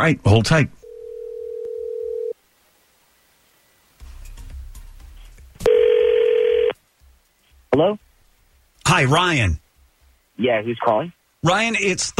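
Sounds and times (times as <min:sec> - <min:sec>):
speech: 0:00.0 - 0:00.8, 0:07.8 - 0:08.1, 0:08.9 - 0:09.6, 0:10.4 - 0:12.1
telephone ringback tone: 0:00.8 - 0:02.4, 0:05.7 - 0:06.8.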